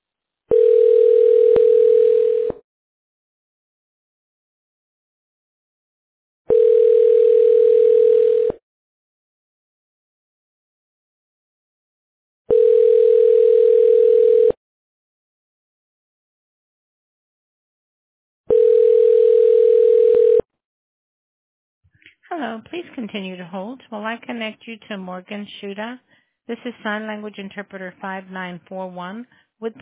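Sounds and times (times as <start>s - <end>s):
telephone ringing tone while call connects: 0.5s - 2.6s, 6.5s - 8.6s, 12.5s - 14.6s, 18.5s - 20.5s
speech: 23.0s - 29.7s.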